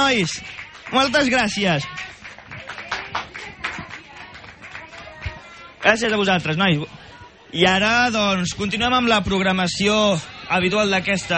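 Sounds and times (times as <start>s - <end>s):
audience applause: 0.0s - 6.2s
speech: 0.1s - 2.2s, 5.9s - 11.3s.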